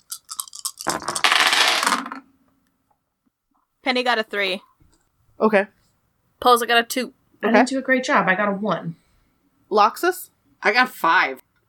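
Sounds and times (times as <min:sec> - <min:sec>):
dice rolling on a table: 0:00.1 - 0:02.3
speech: 0:03.9 - 0:04.7, 0:05.4 - 0:05.8, 0:06.4 - 0:09.0, 0:09.7 - 0:11.4.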